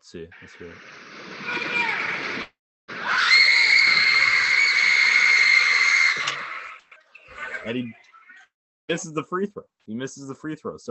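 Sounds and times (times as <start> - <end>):
speech: 0.1 - 2.5, 7.6 - 8.1, 8.9 - 10.8
basketball crowd roaring: 1.4 - 7.7
long piercing high-pitched scream: 1.4 - 7.7.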